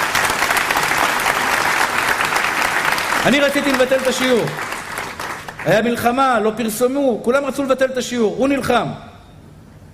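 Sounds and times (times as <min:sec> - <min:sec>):
audience applause: 0:00.0 - 0:05.9
speech: 0:03.2 - 0:04.7, 0:05.6 - 0:09.1.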